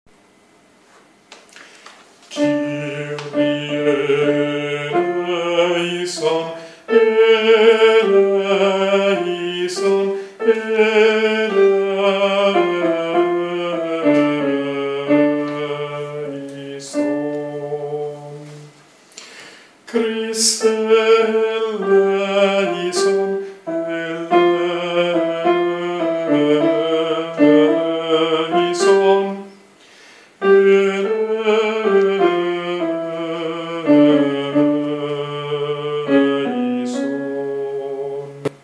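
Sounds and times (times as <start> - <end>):
contraltos singing a Kyrie: 2.3 - 18.9, 19.8 - 29.8, 30.4 - 38.6.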